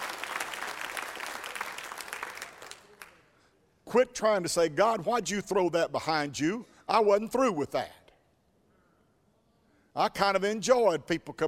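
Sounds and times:
audience applause: 0.0s - 3.2s
speech: 3.9s - 8.0s, 10.0s - 11.4s.

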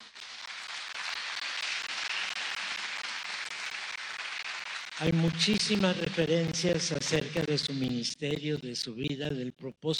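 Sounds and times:
audience applause: 0.0s - 5.3s
speech: 5.0s - 9.9s.

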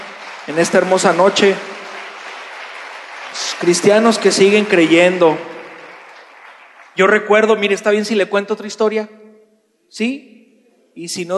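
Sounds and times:
audience applauding: 0.0s - 7.5s
speech: 0.5s - 1.7s, 3.6s - 5.5s, 7.0s - 9.2s, 9.9s - 10.4s, 11.0s - 11.3s.

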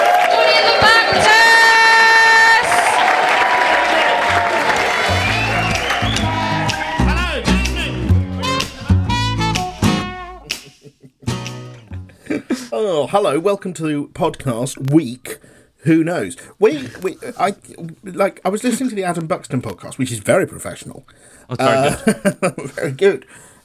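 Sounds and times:
audience clapping and cheering loudly: 0.0s - 11.8s
laughter: 3.8s - 7.5s, 21.7s - 22.7s
band's upbeat music with bouncing bass line: 4.3s - 11.8s
speech: 13.1s - 23.5s.

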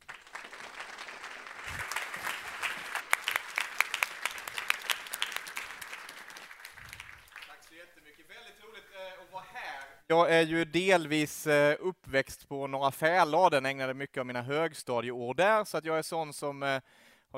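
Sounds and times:
audience applause: 0.0s - 7.8s
speech: 10.1s - 17.3s.

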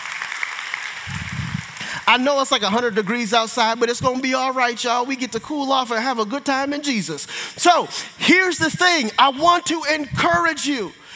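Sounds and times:
audience clapping: 0.0s - 2.6s
speech: 2.1s - 11.0s.

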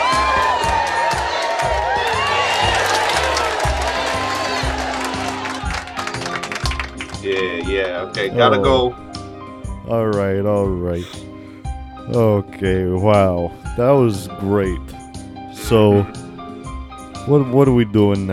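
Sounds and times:
crowd applause: 0.0s - 8.4s
steady low rhythmic beat: 0.0s - 18.3s
speech: 7.3s - 9.0s, 9.9s - 11.2s, 12.1s - 15.0s, 15.7s - 16.2s, 17.2s - 18.3s.

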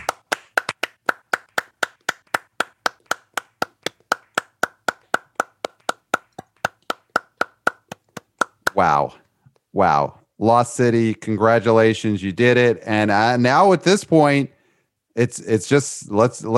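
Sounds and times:
people clapping: 0.0s - 8.9s
speech: 8.8s - 9.2s, 9.8s - 14.6s, 15.2s - 16.5s.

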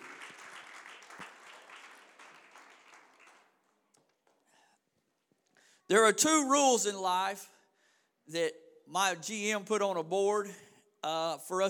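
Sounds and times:
audience clapping hands in praise: 0.0s - 4.4s
speech: 5.9s - 7.5s, 8.3s - 11.6s.

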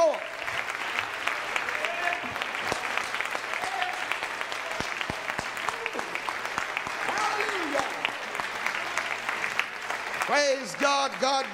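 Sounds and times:
audience clapping in church in a large room: 0.0s - 11.5s
speech: 10.6s - 11.5s.

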